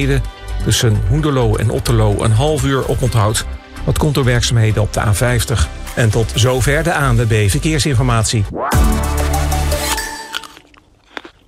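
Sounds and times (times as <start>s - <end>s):
speech: 0.0s - 9.3s
biting into a crunchy apple: 10.1s - 11.4s.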